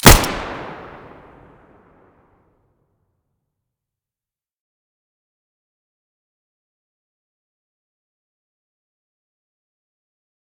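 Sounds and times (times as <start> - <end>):
Five-seven pistol muzzle gunshot: 0.0 - 1.4.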